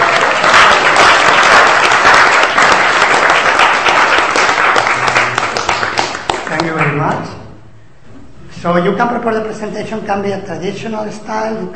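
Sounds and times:
audience applause: 0.0 - 7.0
speech: 8.6 - 11.7.

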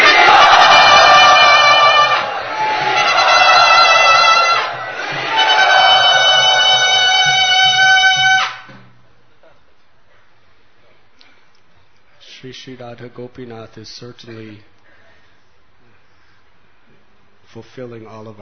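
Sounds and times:
audience shouting and cheering to welcome a guest: 0.0 - 8.7
speech: 12.9 - 14.7, 17.5 - 18.3.

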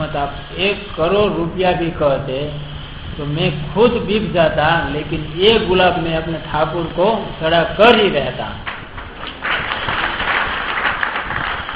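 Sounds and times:
speech: 0.1 - 8.7
audience clapping: 8.6 - 11.7.

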